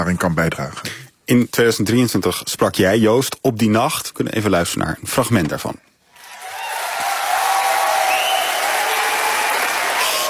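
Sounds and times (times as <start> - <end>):
speech: 0.0 - 5.9
faint cheering: 6.1 - 10.2
audience applause at poetry night: 6.2 - 10.2.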